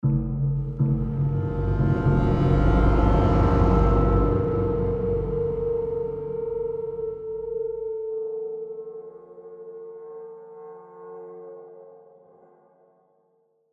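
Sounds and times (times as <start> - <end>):
tense mood music: 0.0 - 9.5.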